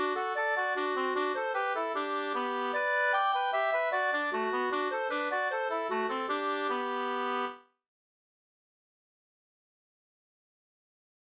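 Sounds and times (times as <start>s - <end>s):
mazurka: 0.0s - 7.5s.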